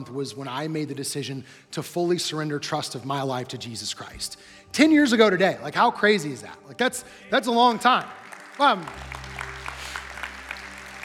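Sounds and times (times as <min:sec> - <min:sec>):
speech: 0:00.0 - 0:09.2
audience applause: 0:07.8 - 0:11.0.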